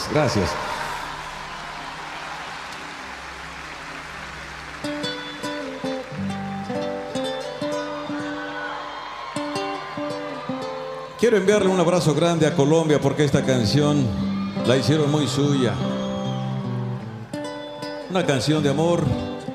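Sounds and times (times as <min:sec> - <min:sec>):
audience applause: 0:00.0 - 0:17.3
speech: 0:00.1 - 0:00.7, 0:11.2 - 0:16.0, 0:18.1 - 0:19.3.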